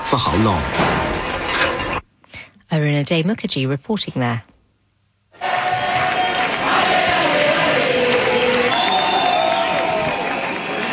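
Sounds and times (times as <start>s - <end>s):
speech: 0.1s - 1.0s, 2.7s - 4.5s
large crowd protesting in the streets of Spain, shouting and chanting: 5.4s - 10.9s.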